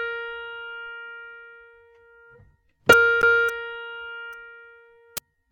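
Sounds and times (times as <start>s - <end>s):
tuning notes: 2.9s - 3.6s.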